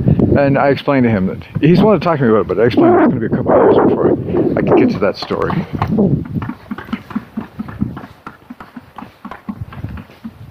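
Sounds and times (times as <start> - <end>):
speech: 0.4 - 6.4
roofers hammering on a house roof: 5.3 - 10.4.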